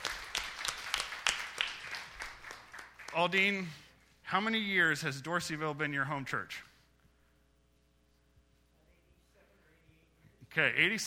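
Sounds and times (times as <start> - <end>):
audience applause: 0.0 - 3.4
speech: 3.2 - 6.7, 10.6 - 11.0.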